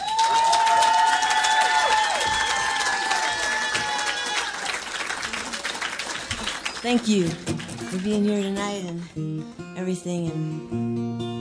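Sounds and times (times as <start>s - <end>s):
audience applauding and cheering to welcome a singer: 0.0s - 8.4s
speech: 6.8s - 11.3s.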